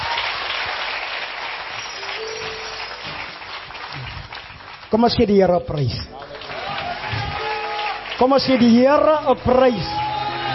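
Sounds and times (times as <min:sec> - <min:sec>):
crowd clapping: 0:00.0 - 0:10.5
speech: 0:04.9 - 0:06.2, 0:08.2 - 0:10.0.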